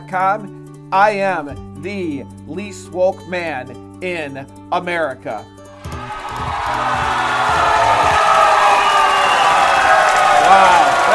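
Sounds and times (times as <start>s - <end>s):
speech: 0.1s - 5.6s, 6.4s - 7.8s
low rhythmic thumping: 5.8s - 8.7s
large crowd cheering and roaring: 5.8s - 11.1s.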